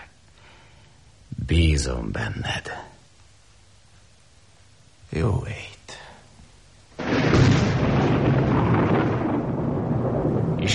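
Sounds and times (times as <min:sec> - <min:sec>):
speech: 0:01.5 - 0:02.9, 0:05.2 - 0:06.0
thunder: 0:07.0 - 0:10.7.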